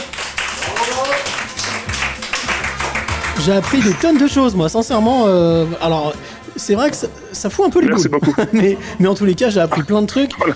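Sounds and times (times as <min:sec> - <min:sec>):
applause: 0:00.0 - 0:04.4
people talking and laughing: 0:00.0 - 0:10.5
speech: 0:03.4 - 0:10.5.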